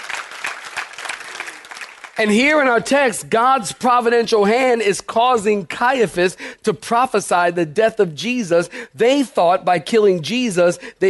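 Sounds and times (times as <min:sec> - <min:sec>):
audience clapping hands: 0:00.0 - 0:02.8
speech: 0:02.2 - 0:11.0.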